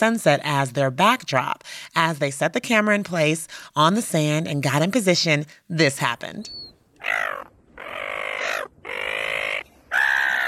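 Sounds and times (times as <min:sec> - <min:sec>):
speech: 0:00.0 - 0:08.1
seagulls squawking on a beach: 0:06.5 - 0:10.4.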